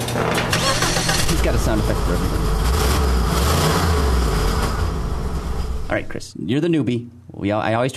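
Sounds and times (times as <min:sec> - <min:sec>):
car engine starting up: 0:00.1 - 0:06.1
speech: 0:01.5 - 0:02.7, 0:05.9 - 0:07.9.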